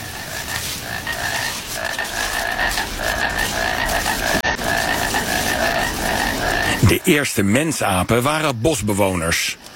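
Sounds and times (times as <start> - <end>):
painted frog croaking trill: 0.0 - 7.1
speech: 7.1 - 9.7.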